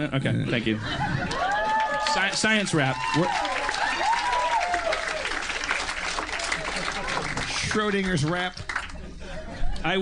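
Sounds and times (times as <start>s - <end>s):
speech: 0.0s - 1.3s, 2.1s - 3.6s, 7.6s - 8.7s
laughter: 0.4s - 2.0s, 6.4s - 7.8s, 8.8s - 9.9s
audience applause: 1.2s - 9.1s.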